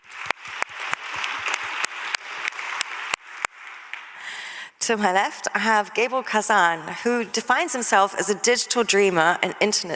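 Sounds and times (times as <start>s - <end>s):
sharper louder claps: 0.0s - 4.3s
audience applause welcoming a speaker: 0.0s - 4.6s
speech: 4.8s - 9.9s.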